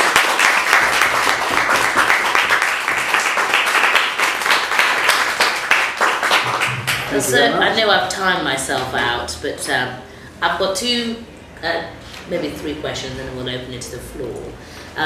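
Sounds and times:
round of applause: 0.0 - 7.2
speech: 7.2 - 15.0.

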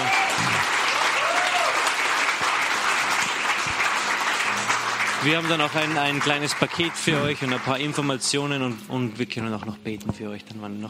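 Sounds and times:
audience applause: 0.0 - 8.9
speech: 5.2 - 10.8.

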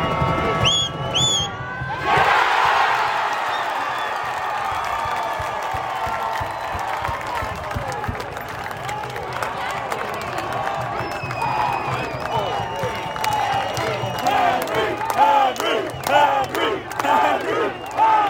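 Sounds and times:
Forge FC supporters in the stands cheering a goalkeeper's save: 0.0 - 18.2
Forge FC supporters chanting rhythmic shouts: 1.9 - 3.3, 13.3 - 18.2.

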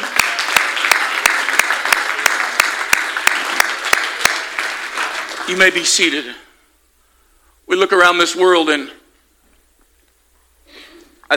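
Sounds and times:
audience clapping hands: 0.0 - 6.4
speech: 5.5 - 6.4, 7.7 - 9.0.

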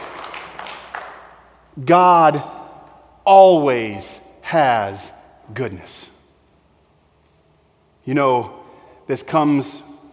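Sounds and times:
audience clapping: 0.0 - 1.6
speech: 1.8 - 2.6, 3.3 - 6.1, 8.0 - 9.9.

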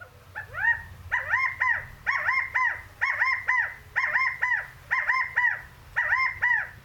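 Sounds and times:
California quail rally call: 0.0 - 6.8.

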